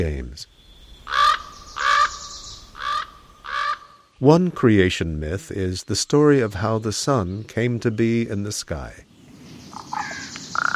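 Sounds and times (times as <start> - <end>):
speech: 0.0 - 1.2, 4.2 - 9.1
raven cawing: 1.0 - 4.1, 9.7 - 10.7.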